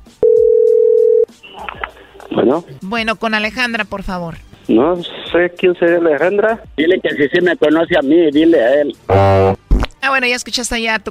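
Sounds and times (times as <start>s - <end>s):
telephone dialing tones: 0.2s - 1.2s
speech: 2.4s - 11.0s.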